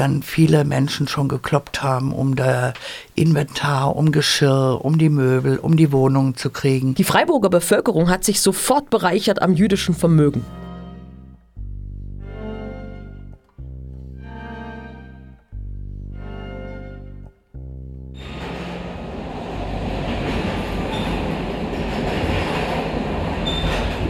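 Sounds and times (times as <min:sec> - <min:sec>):
speech: 0:00.0 - 0:10.6
train rolling along the rails: 0:18.2 - 0:24.0.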